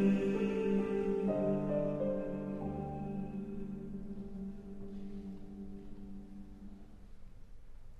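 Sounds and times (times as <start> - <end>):
TTBB male chorus singing: 0.0 - 3.6.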